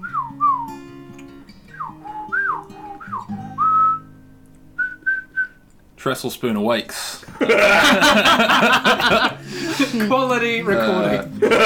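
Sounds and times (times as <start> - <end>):
person whistling an imitation of birdsong: 0.0 - 0.8, 1.7 - 4.2, 4.8 - 5.6
speech: 6.0 - 11.6
laughter: 7.2 - 11.6.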